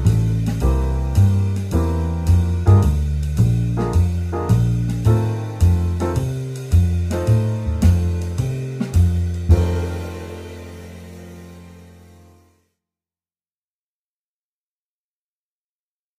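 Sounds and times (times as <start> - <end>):
basic swing blues in F: 0.0 - 12.2.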